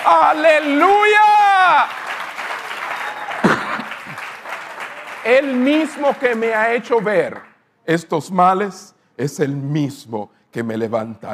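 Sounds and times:
audience applause: 0.0s - 7.5s
speech: 0.1s - 2.0s, 5.2s - 11.3s.

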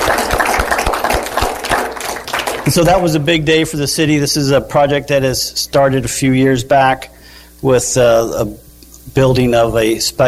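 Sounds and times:
audience applause: 0.0s - 3.1s
speech: 2.7s - 10.2s.

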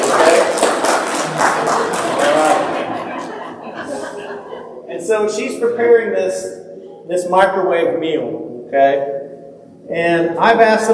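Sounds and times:
audience applause: 0.0s - 4.1s
laughter: 1.2s - 4.9s
speech: 5.1s - 9.1s, 9.9s - 10.9s.

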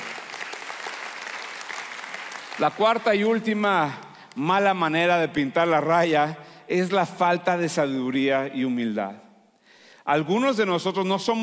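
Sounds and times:
audience applause: 0.0s - 3.5s
speech: 2.6s - 9.2s, 10.1s - 11.4s.

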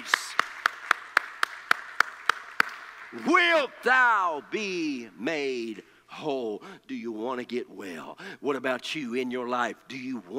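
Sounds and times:
audience clapping hands in a steady even rhythm: 0.0s - 4.4s
speech: 3.1s - 10.3s.

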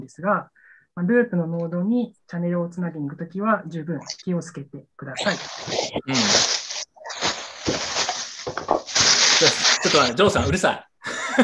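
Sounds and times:
speech: 0.0s - 6.6s, 9.4s - 11.4s
plastic bag rustling: 5.2s - 10.4s.

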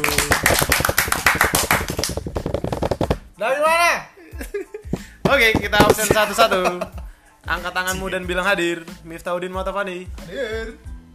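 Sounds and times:
hand clapping: 0.0s - 3.2s, 4.9s - 6.7s
speech: 5.3s - 10.9s.

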